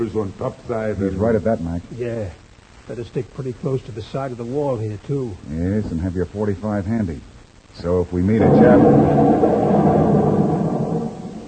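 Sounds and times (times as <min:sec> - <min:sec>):
speech: 0:00.0 - 0:09.5
dam blowing up, deep explosion rumble: 0:08.3 - 0:11.4.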